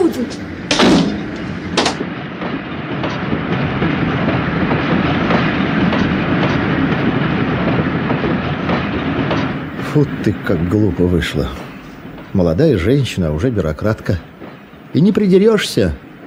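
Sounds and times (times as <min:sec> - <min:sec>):
train departing from a station with a low rumble: 0:00.0 - 0:16.2
speech: 0:10.0 - 0:11.7, 0:12.4 - 0:14.3, 0:14.9 - 0:16.1.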